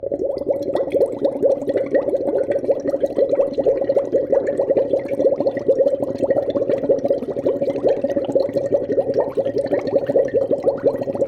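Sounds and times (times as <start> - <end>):
water in a vase: 0.0 - 11.2.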